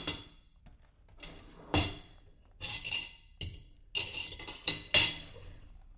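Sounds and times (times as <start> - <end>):
forks clinking against plates while eating: 2.6 - 5.4.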